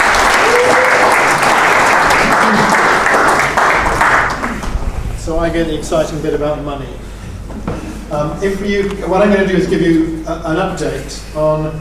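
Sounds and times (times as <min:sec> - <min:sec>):
audience applause: 0:00.0 - 0:04.7
speech: 0:05.5 - 0:07.0, 0:08.1 - 0:11.7.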